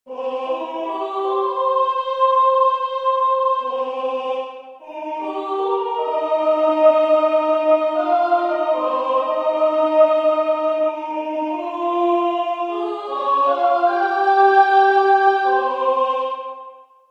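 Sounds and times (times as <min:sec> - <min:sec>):
soprano singing: 0:00.1 - 0:16.9.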